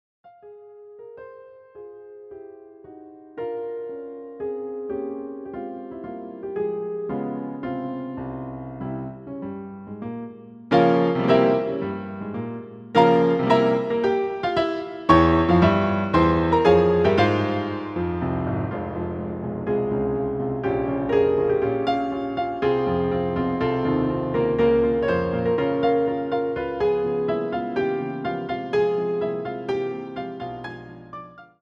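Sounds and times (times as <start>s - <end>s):
piano concerto: 0.3s - 31.6s.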